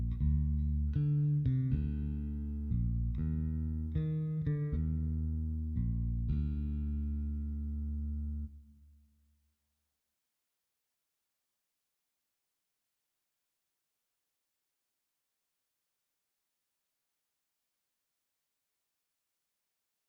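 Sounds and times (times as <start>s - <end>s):
bass: 0.0s - 8.9s.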